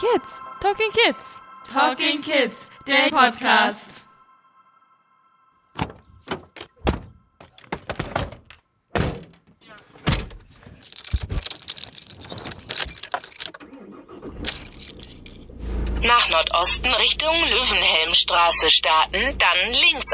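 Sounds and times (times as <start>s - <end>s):
speech: 0.0s - 4.0s, 16.0s - 20.1s
thunks and rustling of someone climbing into a van: 5.8s - 13.8s, 14.4s - 15.5s
keys jangling: 5.8s - 15.9s
clattering movement: 5.8s - 16.2s.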